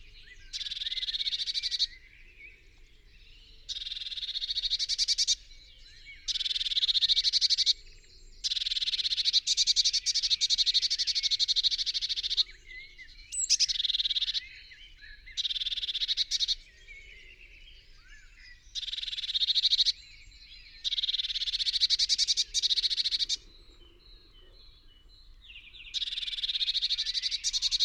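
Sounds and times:
faint chirps from other birds: 0.0 - 27.8.

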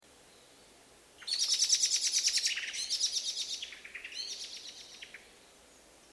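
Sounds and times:
common blackbird call: 1.2 - 5.3.

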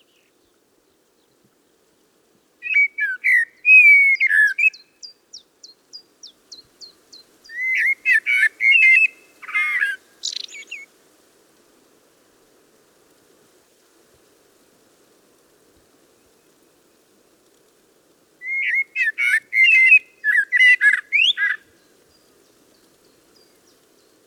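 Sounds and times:
common blackbird song: 2.6 - 10.9, 18.4 - 21.7.

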